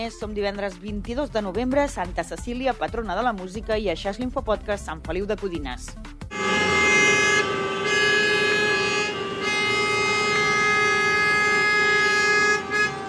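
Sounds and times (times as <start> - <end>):
speech: 0.0 - 6.6
car horns honking in a traffic jam: 6.3 - 13.0.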